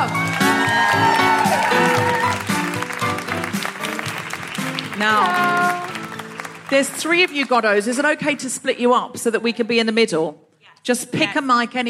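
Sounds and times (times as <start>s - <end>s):
audience clapping at a live Edinburgh Fringe show: 0.0s - 8.7s
speech: 6.7s - 11.8s.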